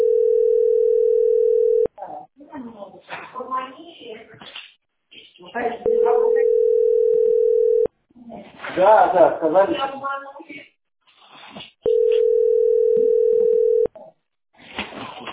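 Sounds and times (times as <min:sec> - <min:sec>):
telephone ringback tone: 0:00.0 - 0:01.9, 0:05.9 - 0:07.9, 0:11.9 - 0:13.9
speech: 0:08.8 - 0:10.3.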